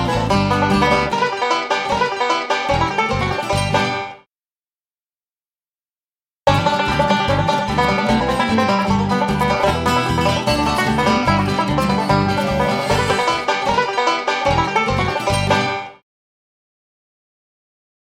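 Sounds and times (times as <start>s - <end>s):
guitar fingerpicking: 0.0s - 4.0s, 6.5s - 15.8s.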